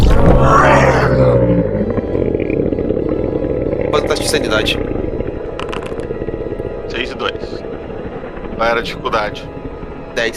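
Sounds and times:
monstrous creature roar: 0.0s - 7.7s
speech: 4.3s - 4.9s, 8.6s - 9.5s, 10.2s - 10.3s.

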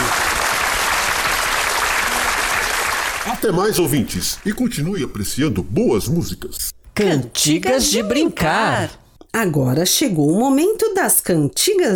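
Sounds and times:
audience applause: 0.0s - 4.6s
speech: 3.4s - 11.9s.

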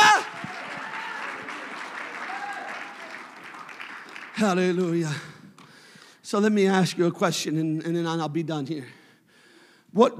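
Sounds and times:
faint cheering and voices: 0.0s - 3.4s
audience clapping: 0.0s - 5.8s
speech: 4.4s - 5.3s, 6.3s - 9.0s, 9.9s - 10.1s.

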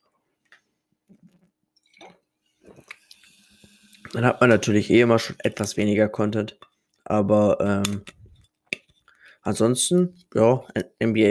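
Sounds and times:
person taking a quick sip of a drink: 2.0s - 4.2s
speech: 4.1s - 8.2s, 9.5s - 11.3s.

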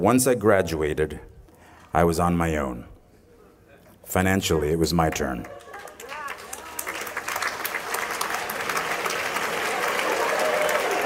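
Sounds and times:
speech: 0.0s - 1.3s, 1.9s - 2.9s, 4.1s - 5.6s
audience applause: 5.4s - 11.0s.

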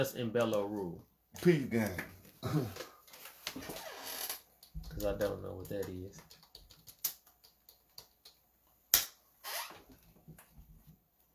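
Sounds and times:
speech: 0.0s - 2.9s, 3.6s - 3.8s, 5.0s - 6.4s
keyboard typing: 4.5s - 8.4s.

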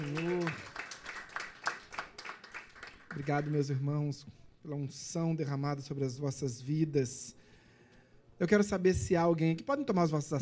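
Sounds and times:
audience applauding: 0.0s - 3.7s
speech: 3.1s - 7.4s, 8.4s - 10.4s.

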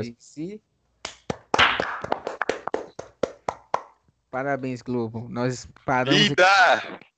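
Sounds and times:
speech: 0.0s - 0.7s, 4.3s - 7.1s
people clapping: 1.0s - 4.0s.

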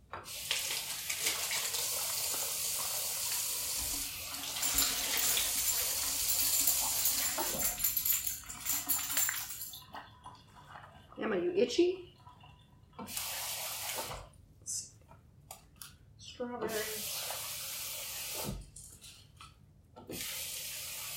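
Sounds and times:
speech: 0.2s - 0.6s, 11.4s - 12.1s
faucet water running while rinsing berries for gluten-free crepes: 0.2s - 9.7s, 13.0s - 14.2s, 16.6s - 18.6s, 20.1s - 21.1s.

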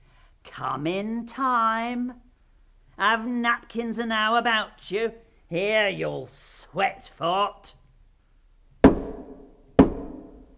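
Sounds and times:
speech: 0.6s - 2.3s, 3.0s - 7.8s
knocking on a door: 8.8s - 10.4s.

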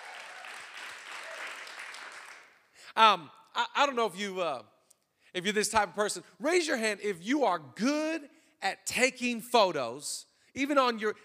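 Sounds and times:
audience clapping for first-time visitors: 0.0s - 2.8s
speech: 3.0s - 11.2s.

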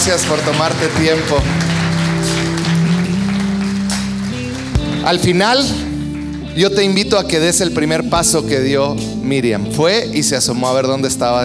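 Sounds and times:
speech: 0.0s - 2.4s, 5.0s - 5.9s, 6.6s - 11.4s
audience applause: 0.0s - 6.4s.

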